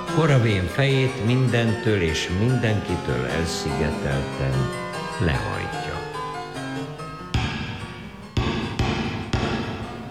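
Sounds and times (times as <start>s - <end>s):
speech: 0.2s - 5.6s
hammer pounding large nails: 7.4s - 10.1s.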